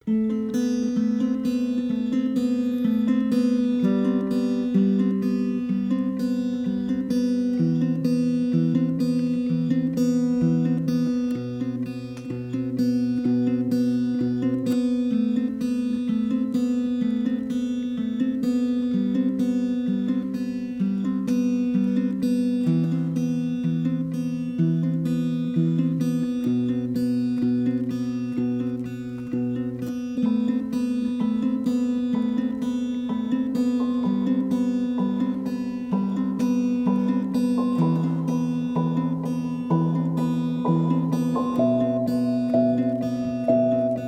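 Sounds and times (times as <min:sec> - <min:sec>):
instrumental music: 0:00.0 - 0:44.0.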